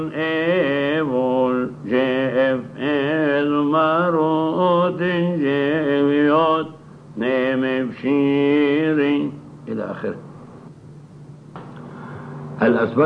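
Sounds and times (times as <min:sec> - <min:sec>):
gospel response singing: 0:00.0 - 0:09.4.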